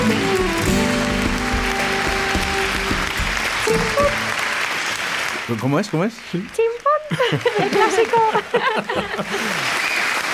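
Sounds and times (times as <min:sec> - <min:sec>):
audience of children and parents applauding: 0:00.0 - 0:05.5, 0:08.9 - 0:10.3
speech: 0:05.5 - 0:10.0
laughter: 0:07.0 - 0:09.8.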